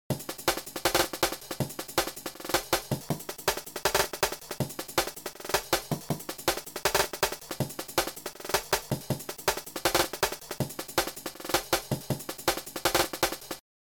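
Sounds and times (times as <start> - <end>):
pitched drum: 0.1 - 13.6.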